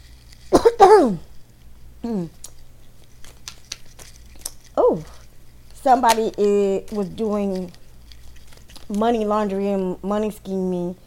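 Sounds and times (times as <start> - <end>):
person coughing after nearly choking: 0.5 - 1.3
speech: 0.8 - 1.3, 2.0 - 2.4, 5.8 - 7.8, 8.9 - 11.0.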